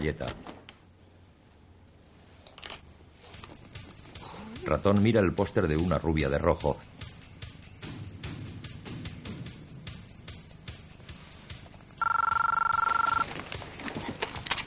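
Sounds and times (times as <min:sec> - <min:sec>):
speech: 0:00.0 - 0:00.6, 0:04.6 - 0:07.0
telephone ringing in The Matrix: 0:12.0 - 0:13.3.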